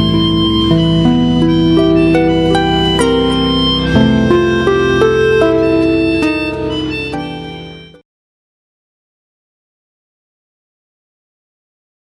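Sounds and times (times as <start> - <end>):
flute: 0.0 - 8.0
harp: 0.0 - 8.0.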